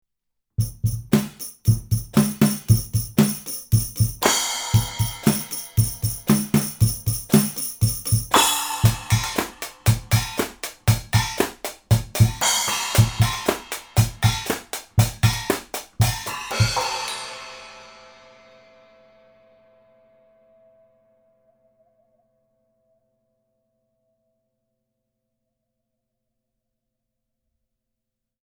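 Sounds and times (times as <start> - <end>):
voodoo drums recorded in Blumlein stereo: 0.6 - 17.8.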